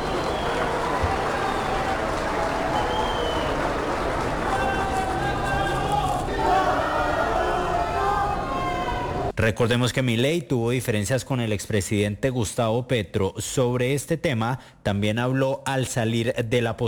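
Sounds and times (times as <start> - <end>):
crowd applauding in an arena: 0.0 - 9.3
speech: 9.4 - 16.8.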